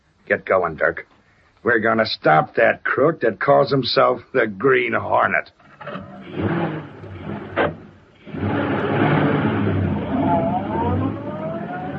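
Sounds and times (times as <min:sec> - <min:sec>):
speech: 0:00.3 - 0:06.5
car door thumping shut: 0:05.8 - 0:09.8
car engine revving as the car pulls away: 0:05.8 - 0:11.9.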